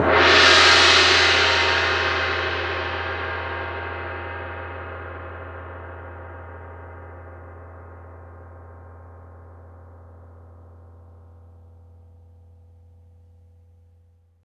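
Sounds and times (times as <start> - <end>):
large cymbals: 0.0 - 9.8.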